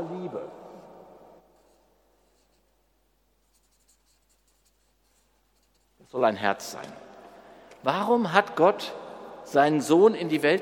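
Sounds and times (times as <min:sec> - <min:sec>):
handwriting strokes writing the word Jesus: 0:01.5 - 0:02.8, 0:03.4 - 0:06.0
speech: 0:06.1 - 0:07.0, 0:07.8 - 0:10.6.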